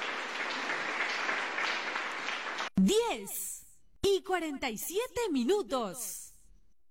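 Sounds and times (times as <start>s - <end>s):
audience applauding: 0.0s - 2.7s
speech: 2.8s - 3.4s, 4.1s - 6.2s.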